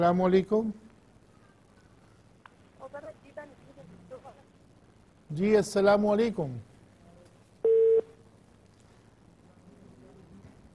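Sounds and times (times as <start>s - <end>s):
speech: 0.0s - 0.8s, 5.3s - 6.7s
faint telephone line hiss: 0.0s - 10.7s
telephone busy tone beep after a dropped call: 7.6s - 8.1s.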